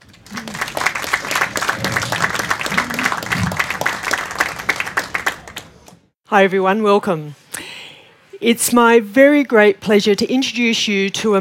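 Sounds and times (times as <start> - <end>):
audience applause greeting a guest moderator at a talk event: 0.0 - 5.9
speech: 6.3 - 7.4, 8.4 - 11.3.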